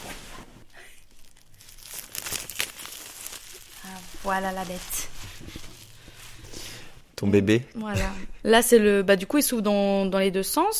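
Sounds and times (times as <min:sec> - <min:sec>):
plastic wrapping torn and crinkled off a book: 0:01.0 - 0:06.9
speech: 0:04.2 - 0:05.2, 0:07.2 - 0:10.7.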